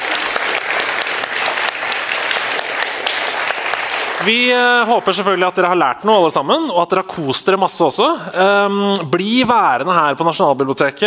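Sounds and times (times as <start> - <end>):
audience applause: 0.0 - 5.7
speech: 4.2 - 11.0.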